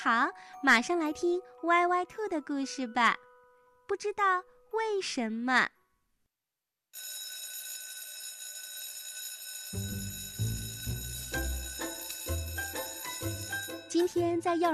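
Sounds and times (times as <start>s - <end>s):
speech: 0.0s - 3.3s, 3.9s - 5.8s, 7.0s - 7.2s, 14.0s - 14.7s
school class bell ringing: 7.0s - 14.3s.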